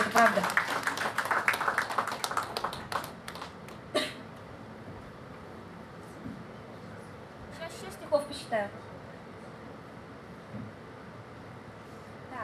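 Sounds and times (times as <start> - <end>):
audience clapping: 0.0 - 3.9.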